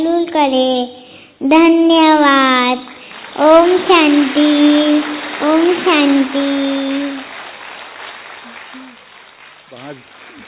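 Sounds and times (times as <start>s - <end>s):
speech: 0.0s - 7.2s, 9.7s - 10.1s
crowd applause: 2.8s - 10.4s.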